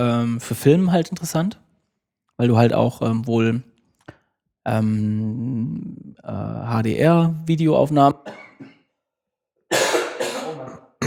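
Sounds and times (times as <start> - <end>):
speech: 0.0 - 1.6, 2.4 - 3.7, 4.7 - 8.7
person coughing: 8.2 - 8.9, 9.7 - 11.0
throat clearing: 9.7 - 11.0.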